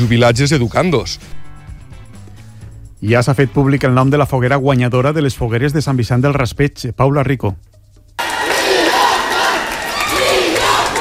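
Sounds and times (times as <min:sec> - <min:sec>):
speech: 0:00.0 - 0:01.4, 0:03.0 - 0:07.8
crowd cheering and shouting in town square: 0:08.2 - 0:10.9.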